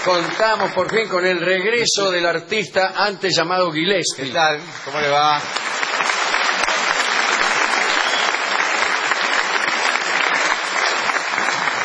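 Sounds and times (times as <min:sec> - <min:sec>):
audience applause: 0:00.0 - 0:01.6, 0:04.2 - 0:11.8
speech: 0:00.0 - 0:05.8.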